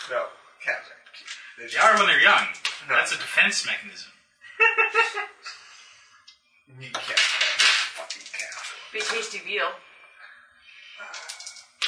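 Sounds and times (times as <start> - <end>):
speech: 0.1 - 5.6, 6.7 - 7.4, 8.9 - 9.9
laughter: 4.5 - 5.9
dice being rolled: 7.0 - 9.3, 11.2 - 11.8.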